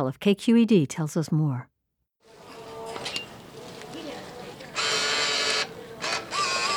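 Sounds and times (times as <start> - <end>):
speech: 0.0 - 1.7
book vending machine in Oakland, California dispensing a short story collection: 4.7 - 6.7.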